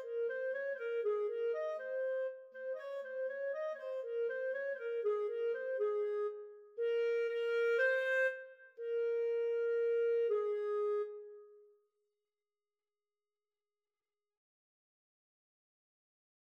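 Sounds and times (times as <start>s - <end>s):
clarinet duet: 0.0s - 11.4s.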